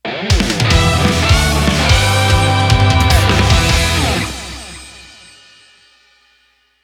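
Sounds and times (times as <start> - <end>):
short victory jingle: 0.7 - 5.7.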